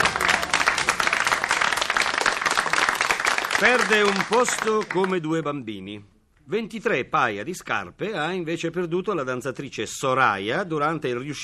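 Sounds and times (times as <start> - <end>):
paid studio audience applauding: 0.0 - 5.3
speech: 3.6 - 11.4.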